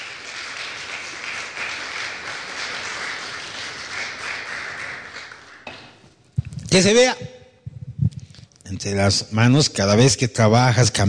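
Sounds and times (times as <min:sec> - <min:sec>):
audience applauding: 0:00.0 - 0:06.0
speech: 0:06.7 - 0:07.3, 0:08.8 - 0:11.0.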